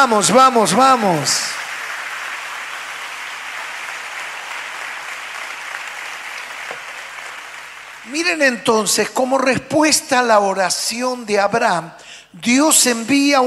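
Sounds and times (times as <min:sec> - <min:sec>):
speech: 0:00.0 - 0:01.6, 0:08.1 - 0:13.4
large crowd applauding: 0:00.0 - 0:08.4.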